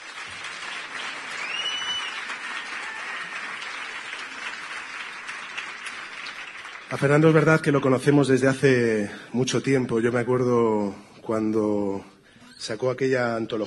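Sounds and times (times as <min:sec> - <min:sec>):
audience applause: 0:00.0 - 0:07.8
brief whistle: 0:01.4 - 0:02.3
speech: 0:06.9 - 0:13.6.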